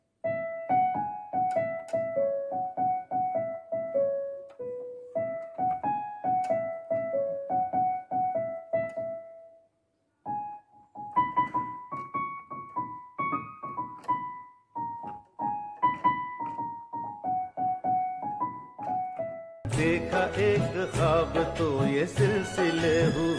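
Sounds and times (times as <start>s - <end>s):
instrumental music: 0.2s - 23.3s.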